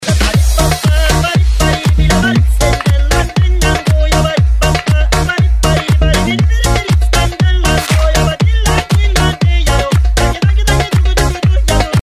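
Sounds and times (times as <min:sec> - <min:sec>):
polka music: 0:00.0 - 0:12.0.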